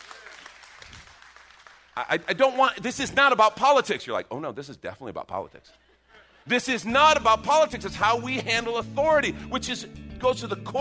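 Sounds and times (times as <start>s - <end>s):
audience cheering and clapping: 0.0s - 3.4s
speech: 2.0s - 10.8s
laughter: 5.4s - 6.9s.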